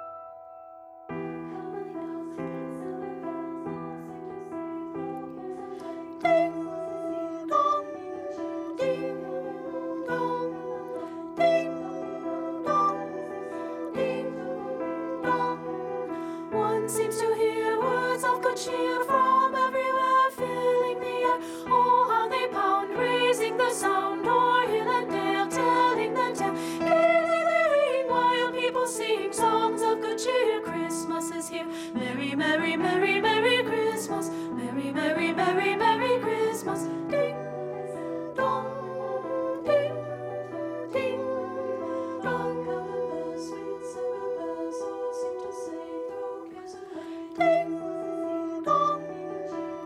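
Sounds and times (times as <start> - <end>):
soprano singing carol: 1.2 - 49.8.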